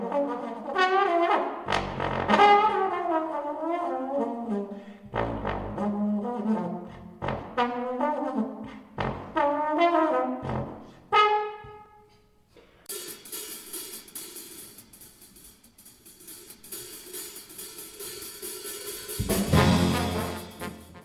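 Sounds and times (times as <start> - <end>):
bebop trombone solo: 0.0 - 11.8, 19.1 - 21.0.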